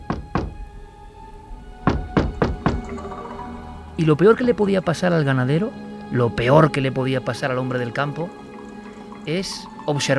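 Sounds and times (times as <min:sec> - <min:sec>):
knocking on the door of a rural house in the Spanish countryside: 0:00.0 - 0:00.6, 0:01.8 - 0:03.1
speech: 0:04.0 - 0:08.4, 0:09.2 - 0:10.1.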